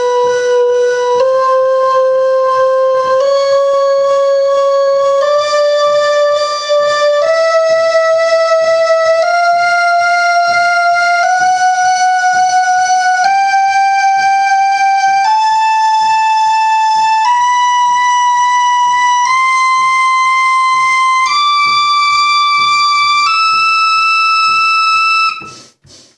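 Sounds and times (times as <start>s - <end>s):
organ playing a scale: 0.0s - 25.7s.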